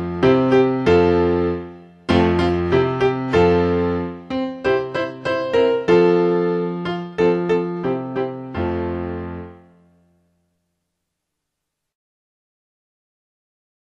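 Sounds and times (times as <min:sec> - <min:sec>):
main instrument: 0:00.0 - 0:10.0.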